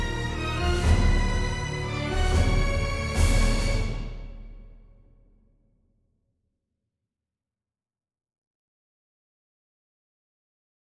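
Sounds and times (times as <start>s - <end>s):
final boss combat music at 140 bpm in E flat minor: 0.0s - 4.8s.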